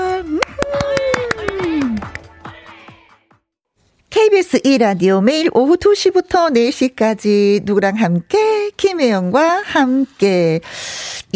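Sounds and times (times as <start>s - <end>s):
rhythmic hand clapping welcoming guests on a Korean afternoon show: 0.3s - 3.4s
speech: 4.5s - 11.3s.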